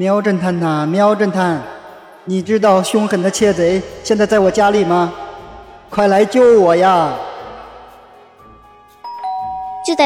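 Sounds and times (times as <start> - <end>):
speech: 0.0 - 5.2, 5.9 - 7.3, 9.8 - 10.0
soft two-tone doorbell chime: 9.0 - 10.0.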